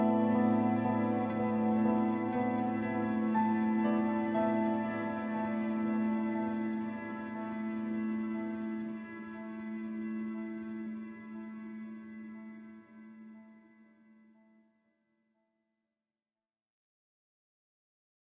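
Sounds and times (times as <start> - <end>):
eerie mystery background music: 0.0 - 13.8.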